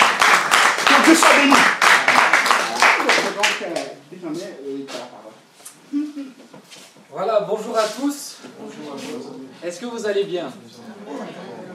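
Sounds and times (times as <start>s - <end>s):
congregation at a church service clapping to acclaim the Lord: 0.0s - 4.0s
speech: 1.1s - 1.8s, 3.6s - 11.5s.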